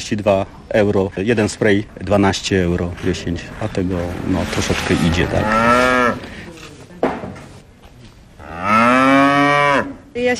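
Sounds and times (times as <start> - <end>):
speech: 0.0 - 6.2, 10.2 - 10.3
cow mooing: 5.3 - 6.2, 8.4 - 10.0.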